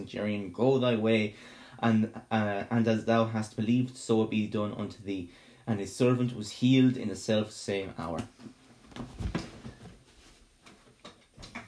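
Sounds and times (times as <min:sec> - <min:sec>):
speech: 0:00.0 - 0:09.5
office chair seat sinking down: 0:08.8 - 0:10.1.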